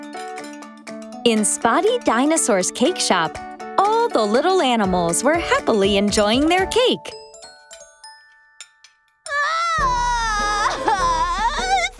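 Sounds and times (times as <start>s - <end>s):
speech: 1.2s - 3.5s, 4.1s - 7.2s
giant crying loudly: 9.4s - 11.9s.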